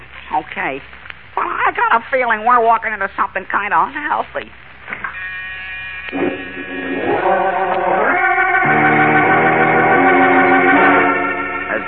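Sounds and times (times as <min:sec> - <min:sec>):
speech: 0:00.6 - 0:04.6, 0:06.1 - 0:06.3
door buzzer sounding in rear office: 0:05.1 - 0:11.7.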